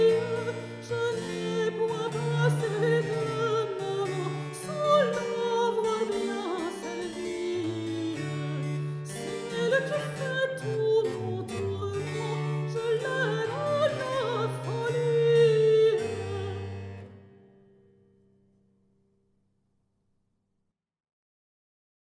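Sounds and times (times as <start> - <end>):
soprano singing a baroque couplet: 0.0 - 17.1.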